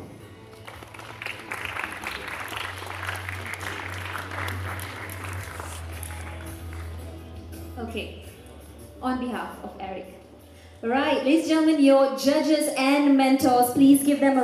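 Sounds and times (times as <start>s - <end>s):
audience applause: 0.4s - 7.0s
speech: 7.9s - 8.3s, 9.0s - 10.2s, 10.8s - 14.4s.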